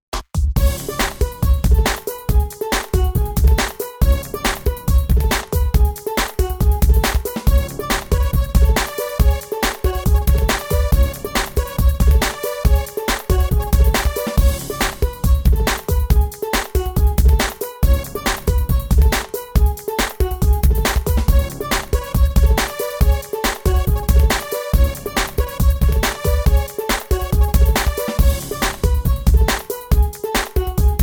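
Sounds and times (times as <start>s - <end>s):
instrumental music: 0.6s - 31.0s.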